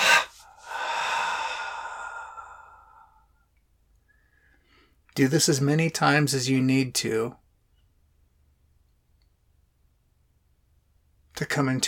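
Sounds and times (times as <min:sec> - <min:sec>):
deep breath drawn in and released: 0:00.0 - 0:03.5, 0:04.1 - 0:05.0
speech: 0:05.2 - 0:07.4, 0:11.6 - 0:11.8.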